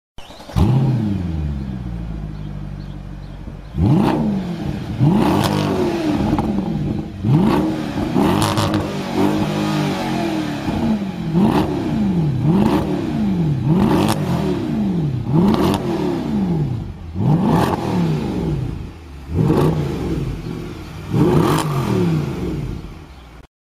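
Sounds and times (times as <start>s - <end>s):
Mercedes E63 AMG engine: 0.2s - 23.5s.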